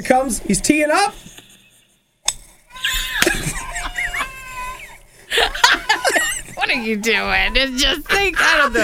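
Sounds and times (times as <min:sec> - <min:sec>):
speech: 0:00.0 - 0:01.3, 0:06.6 - 0:08.8
man screaming in pain: 0:02.7 - 0:05.0
laughter: 0:02.8 - 0:07.1, 0:07.9 - 0:08.8.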